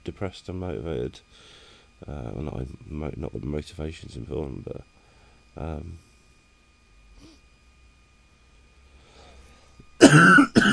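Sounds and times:
speech: 0:00.0 - 0:04.9, 0:05.6 - 0:06.1, 0:10.0 - 0:10.7
faint breathing: 0:01.3 - 0:02.0, 0:04.9 - 0:06.3, 0:08.9 - 0:09.8
cough: 0:10.0 - 0:10.7.

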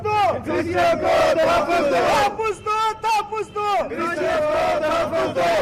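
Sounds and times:
Christian protesters chanting slogans at a demonstration in Quetta, Balochistan: 0:00.2 - 0:02.6, 0:03.8 - 0:05.6.

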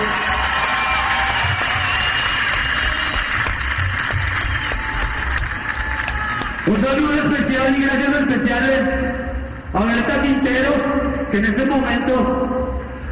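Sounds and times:
scattered cheers: 0:00.0 - 0:06.8
audience applause: 0:00.0 - 0:07.2
speech: 0:06.8 - 0:12.5.

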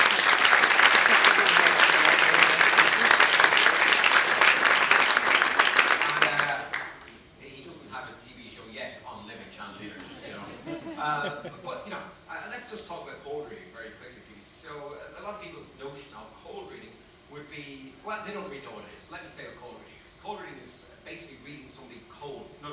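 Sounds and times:
laughter: 0:00.0 - 0:04.0, 0:10.0 - 0:11.8
crowd applauding: 0:00.0 - 0:07.2
room murmur: 0:00.0 - 0:22.7.

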